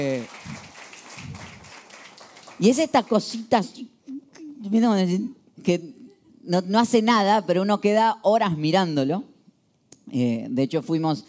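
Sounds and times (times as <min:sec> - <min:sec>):
speech: 0:00.0 - 0:00.5, 0:02.6 - 0:04.0, 0:04.6 - 0:09.3, 0:10.1 - 0:11.2
audience applause: 0:00.0 - 0:02.9.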